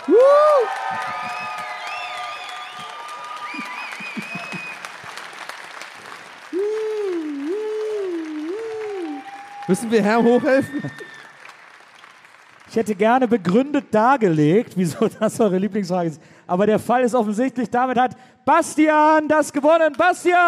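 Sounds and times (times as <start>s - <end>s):
audience applause: 0.0s - 14.0s
laughter: 0.8s - 1.8s, 3.5s - 4.9s
speech: 9.7s - 11.2s, 12.7s - 20.4s.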